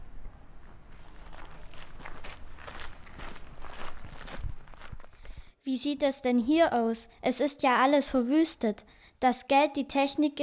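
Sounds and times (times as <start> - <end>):
footsteps walking slowly inside: 0.3 - 5.5
speech: 5.7 - 10.4.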